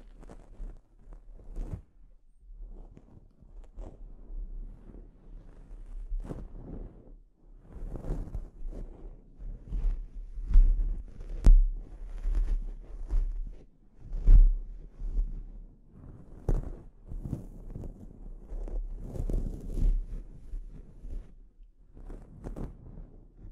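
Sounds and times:
scalp treatment rustling and scratching strokes: 0.0 - 1.9, 4.7 - 7.1, 7.8 - 21.3.

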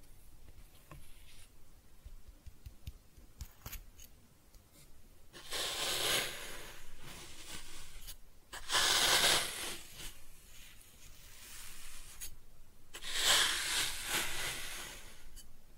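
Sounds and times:
kinetic sand being cut and scooped: 5.4 - 10.2, 13.0 - 15.3.

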